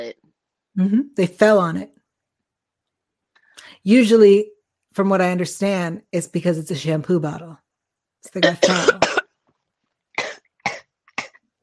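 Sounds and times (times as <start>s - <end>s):
speech: 0.0s - 2.0s, 3.8s - 7.6s, 8.2s - 9.0s
person coughing from choking: 8.4s - 9.3s, 10.2s - 11.4s.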